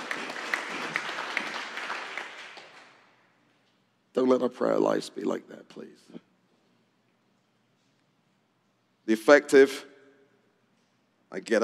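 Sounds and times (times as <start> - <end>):
audience round of applause: 0.0 - 3.2
speech: 4.2 - 6.2, 9.1 - 9.9, 11.3 - 11.6.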